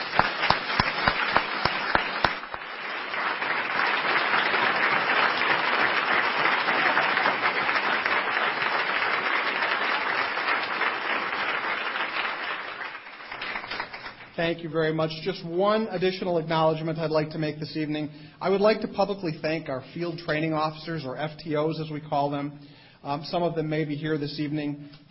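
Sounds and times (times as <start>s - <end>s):
audience applause: 0.0s - 14.4s
speech: 14.4s - 25.0s.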